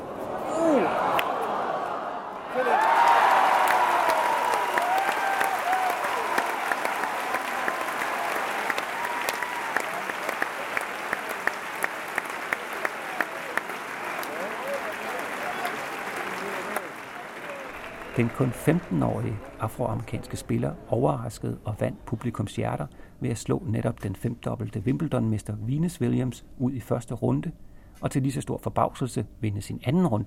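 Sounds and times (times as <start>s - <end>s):
large crowd applause at a tennis match on center court: 0.7s - 20.6s
speech: 18.2s - 30.2s.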